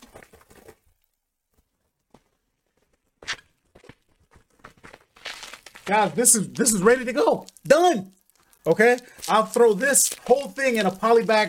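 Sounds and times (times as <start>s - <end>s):
speech: 5.9s - 11.4s
bubble wrap crackling as pulled from a roll: 6.6s - 11.4s
bubble wrap torn from a roll: 7.4s - 11.4s.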